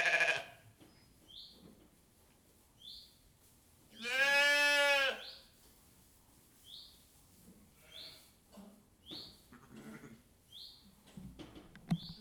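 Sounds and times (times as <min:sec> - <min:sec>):
sheep bleating in a sheepfold with straw: 0:00.0 - 0:00.6, 0:04.0 - 0:05.2.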